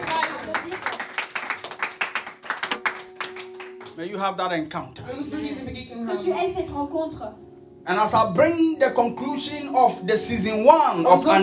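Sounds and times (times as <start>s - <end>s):
hands clapping in praise: 0.0s - 4.1s
speech: 4.0s - 11.4s.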